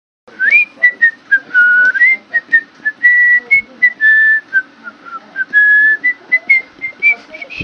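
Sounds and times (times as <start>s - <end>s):
cheery whistling: 0.4s - 7.6s.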